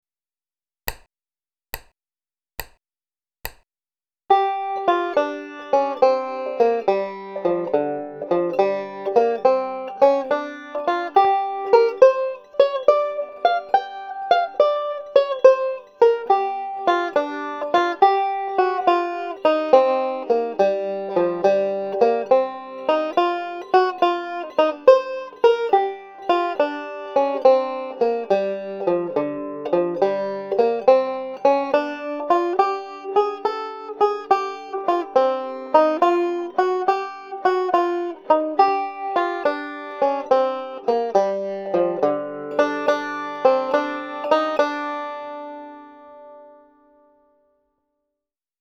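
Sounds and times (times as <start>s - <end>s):
banjo playing twelve-bar blues with solo melody: 4.3s - 47.2s.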